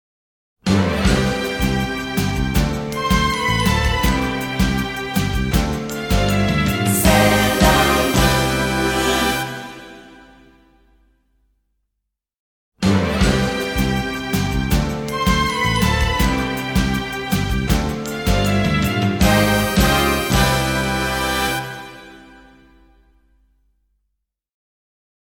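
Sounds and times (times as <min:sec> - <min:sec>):
eyecatch music: 0:01.1 - 0:10.5, 0:13.2 - 0:22.5.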